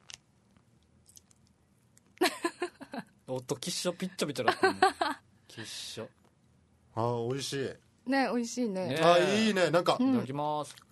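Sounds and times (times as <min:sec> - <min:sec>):
chewing bread stuffed with sausage: 0:00.0 - 0:02.2, 0:10.6 - 0:10.9
speech: 0:03.3 - 0:06.2, 0:07.0 - 0:10.8.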